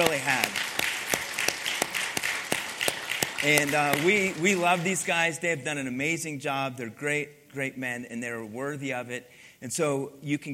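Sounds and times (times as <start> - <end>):
round of applause: 0.0 - 5.1
speech: 3.4 - 10.5.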